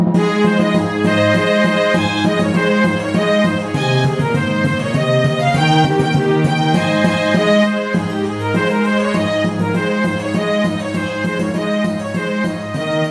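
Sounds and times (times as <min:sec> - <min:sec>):
loud trumpet air: 0:00.2 - 0:13.0.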